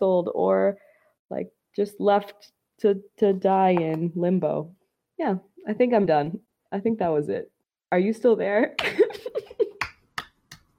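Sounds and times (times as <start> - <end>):
speech: 0.0 - 9.3
slow clapping: 9.8 - 10.7.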